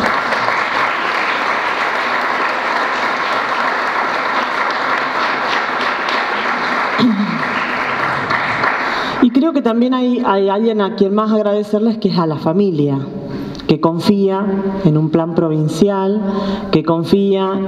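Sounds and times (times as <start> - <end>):
audience applause for the coaches: 0.0 - 9.4
speech: 9.6 - 17.6.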